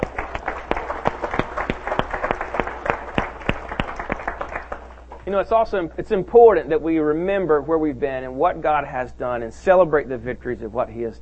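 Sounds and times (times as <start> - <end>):
audience hand clapping: 0.0 - 5.2
speech: 5.3 - 11.1.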